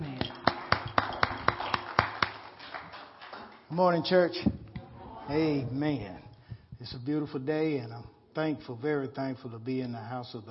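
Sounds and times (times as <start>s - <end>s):
audience clapping in unison: 0.0s - 4.0s
speech: 3.7s - 4.6s, 5.3s - 6.2s, 6.8s - 10.5s.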